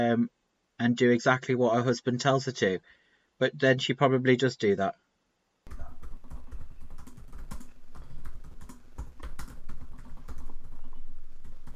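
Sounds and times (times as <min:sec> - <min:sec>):
speech: 0:00.0 - 0:05.0
rapid typing on a computer keyboard: 0:05.7 - 0:11.7.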